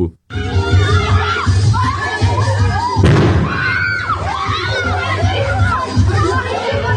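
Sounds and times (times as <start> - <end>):
children playing outdoors: 0.4 - 6.9
grenade explosion: 3.0 - 4.0.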